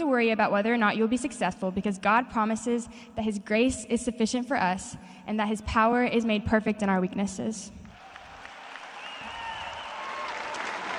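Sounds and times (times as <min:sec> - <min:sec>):
speech: 0:00.0 - 0:07.8
large audience applauding loudly: 0:08.0 - 0:10.9
faint whistles: 0:08.9 - 0:10.3.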